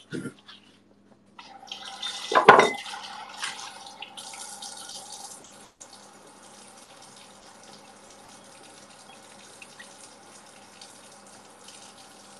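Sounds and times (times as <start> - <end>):
water running from a tap: 1.4 - 12.3
glass clinking: 2.3 - 2.8.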